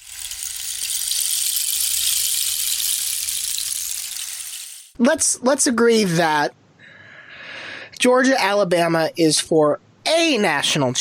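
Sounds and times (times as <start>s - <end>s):
rain stick rattling: 0.0s - 5.0s
speech: 5.0s - 6.6s, 8.0s - 10.9s.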